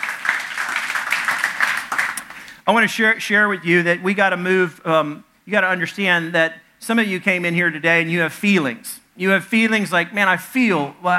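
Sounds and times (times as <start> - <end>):
audience clapping: 0.0 - 2.6
speech: 2.7 - 11.1.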